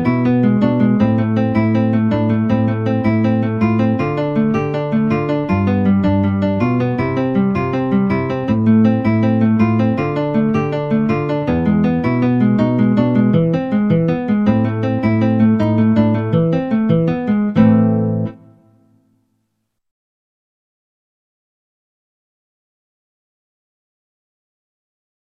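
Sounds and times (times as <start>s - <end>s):
guitar: 0.0s - 19.3s.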